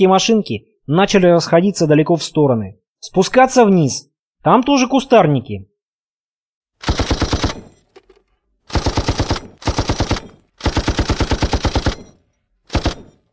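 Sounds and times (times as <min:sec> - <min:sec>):
speech: 0:00.0 - 0:05.7
DShK heavy machine gun firing: 0:06.8 - 0:07.8, 0:08.7 - 0:13.3.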